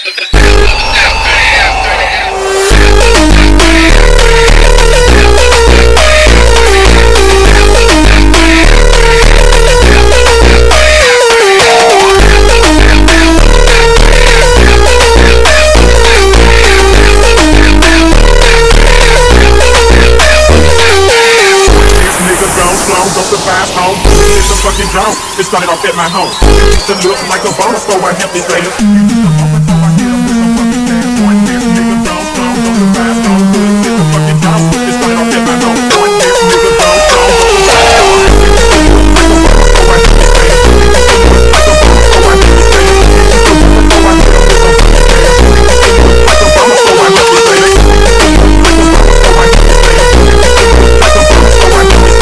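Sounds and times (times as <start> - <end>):
super slowed montagem music: 0.3 - 52.1.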